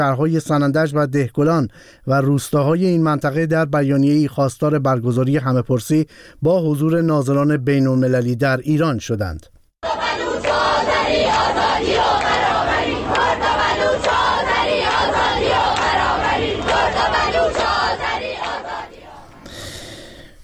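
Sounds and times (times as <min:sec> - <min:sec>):
speech: 0:00.0 - 0:09.6
university students chanting in unison at a protest rally in Iran: 0:09.8 - 0:19.4.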